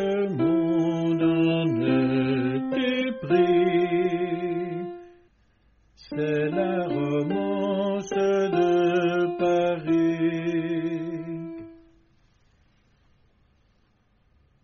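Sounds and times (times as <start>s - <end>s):
tenor singing a romance: 0.0s - 5.2s, 6.0s - 11.9s.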